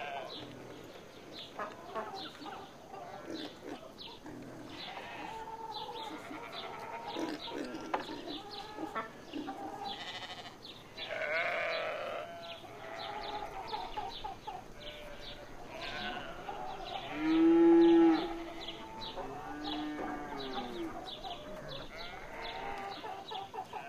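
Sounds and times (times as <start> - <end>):
chickens clucking on a village farm: 0.0 - 23.8.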